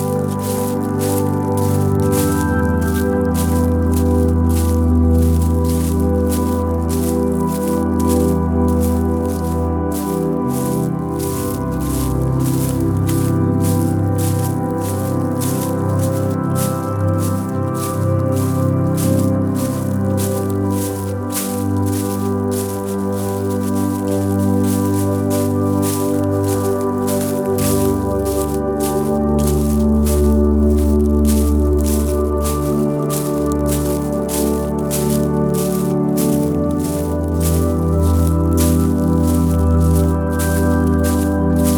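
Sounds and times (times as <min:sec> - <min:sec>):
footsteps crunching quickly through dry leaves: 0:00.0 - 0:41.7.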